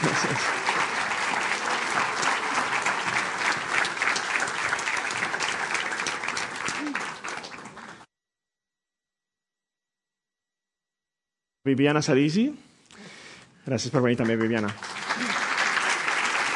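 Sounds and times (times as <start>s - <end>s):
audience applause: 0.0s - 8.1s, 14.0s - 16.5s
speech: 11.7s - 12.7s, 13.7s - 15.3s.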